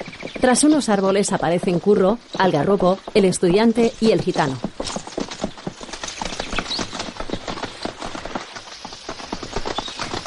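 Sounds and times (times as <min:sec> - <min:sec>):
horses' hooves clip-clopping in the 1978 film Curro Jiménez countryside: 0:00.0 - 0:10.2
speech: 0:00.4 - 0:04.7.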